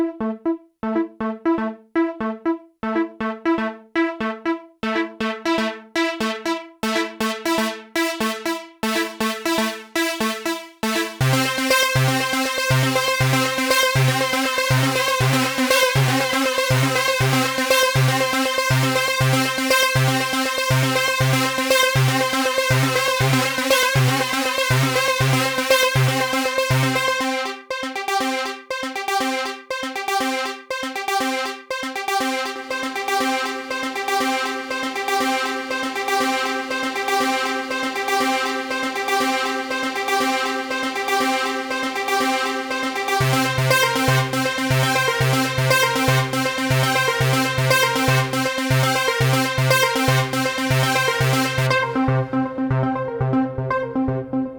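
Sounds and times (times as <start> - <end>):
JunoDS88 JP8000 synth brass filter sequence: 0.2 - 54.5.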